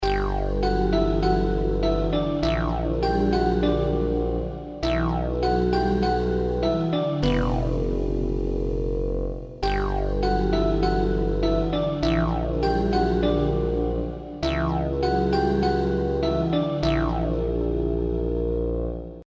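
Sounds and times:
game over background music: 0.0 - 19.2.

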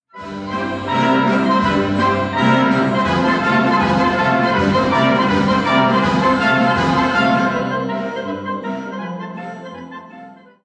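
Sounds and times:
music piece: 0.1 - 10.6.

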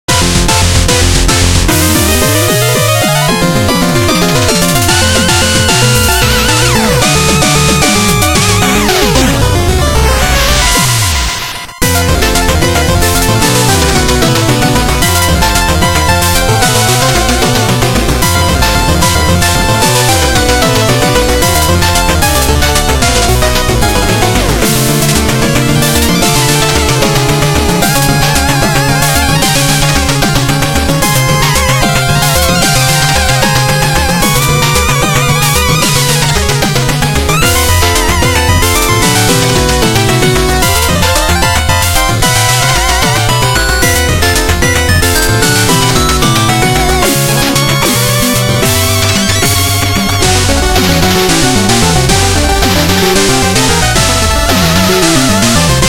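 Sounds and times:
boss battle music: 0.0 - 55.8.

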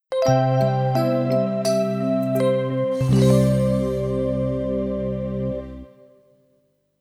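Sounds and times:
jingle: 0.2 - 5.9.

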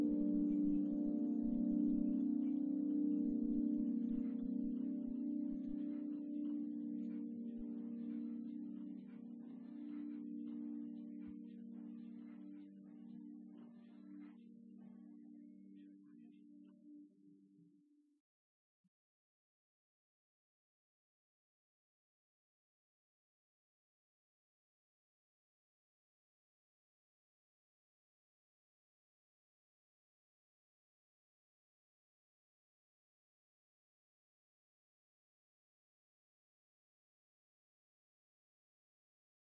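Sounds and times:
piano: 0.0 - 17.1.

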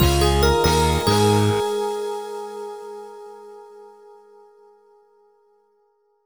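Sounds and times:
level completed jingle: 0.0 - 1.8.

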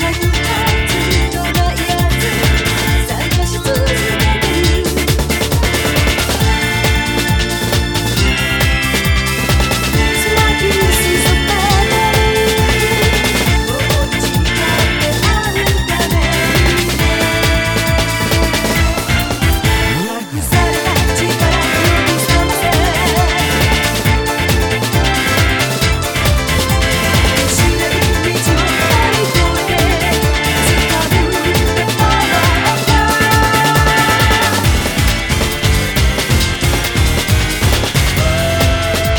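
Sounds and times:
karaoke backing track: 0.0 - 39.1.

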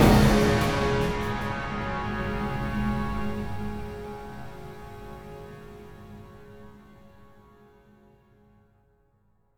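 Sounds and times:
menu music: 0.0 - 3.0.

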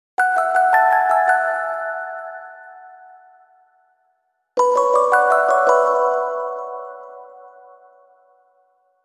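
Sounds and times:
music box: 0.2 - 3.5, 4.6 - 8.5.

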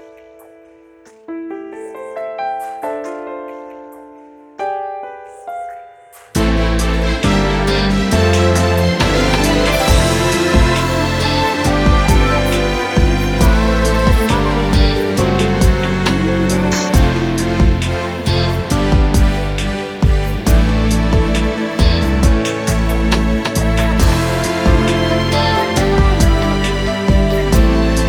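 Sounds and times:
karaoke backing track: 6.4 - 28.0.

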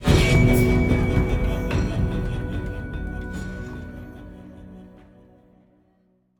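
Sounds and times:
musical sting: 0.0 - 5.4.

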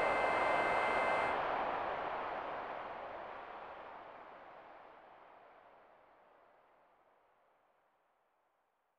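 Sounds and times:
crowd: 0.0 - 6.7.

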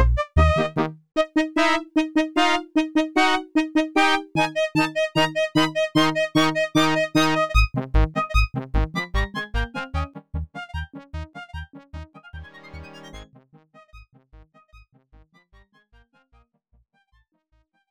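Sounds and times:
polka music: 0.0 - 13.2.

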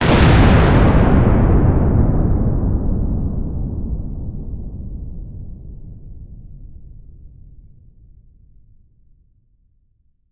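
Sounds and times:
circus explosion: 0.0 - 6.5.

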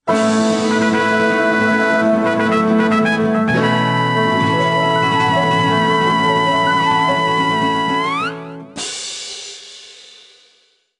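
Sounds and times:
fanfare jingle: 0.1 - 8.6.

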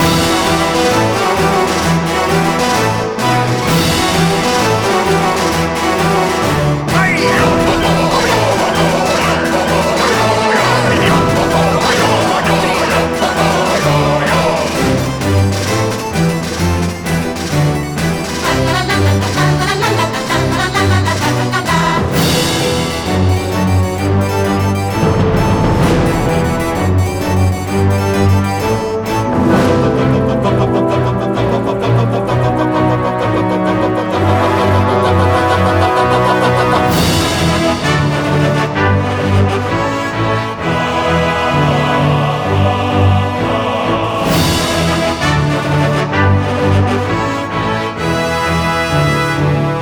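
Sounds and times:
laughter: 0.0 - 16.1, 18.2 - 22.9, 29.4 - 38.8
race music loop: 0.0 - 49.7.

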